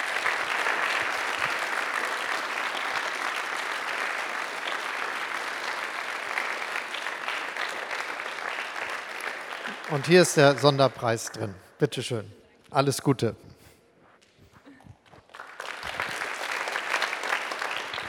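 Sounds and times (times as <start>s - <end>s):
audience applause: 0.0s - 11.6s, 15.2s - 18.0s
speech: 9.9s - 13.4s.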